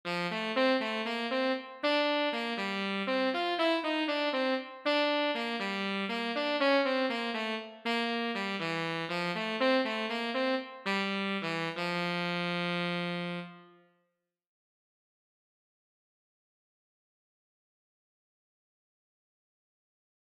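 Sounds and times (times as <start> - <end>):
tenor saxophone: 0.1 - 14.0.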